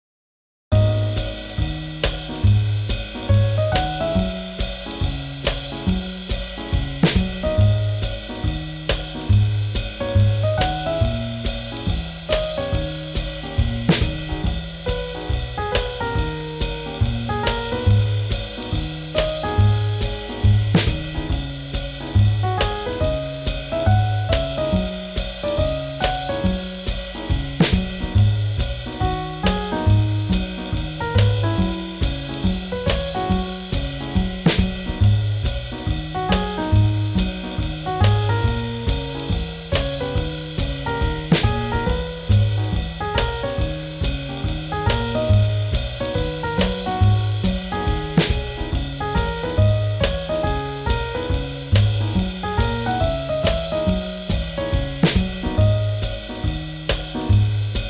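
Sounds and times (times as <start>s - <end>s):
swing jazz: 0.7s - 57.8s.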